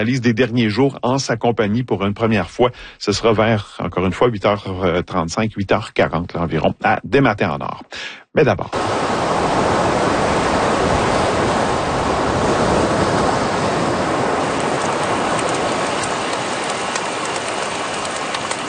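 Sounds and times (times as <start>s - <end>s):
speech: 0.0s - 9.2s
sea waves: 8.7s - 18.6s.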